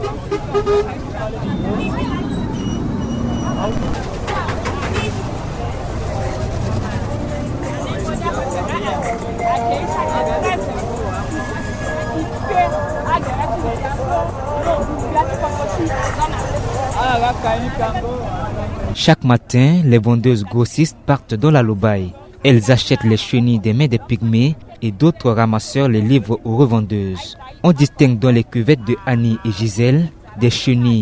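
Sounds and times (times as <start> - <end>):
horn toots: 0.0 - 5.4
cars and motorcycle taxis on a busy narrow street: 0.0 - 31.0
speech: 0.5 - 2.2, 3.6 - 4.2, 12.2 - 31.0.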